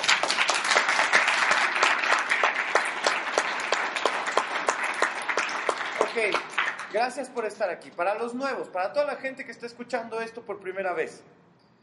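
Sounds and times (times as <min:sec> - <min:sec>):
audience applause: 0:00.0 - 0:07.0
speech: 0:06.2 - 0:11.3.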